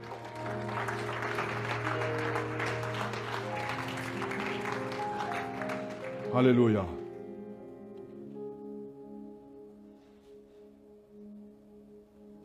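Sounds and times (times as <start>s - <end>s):
church congregation applauding: 0.0s - 7.1s
speech: 6.3s - 7.0s.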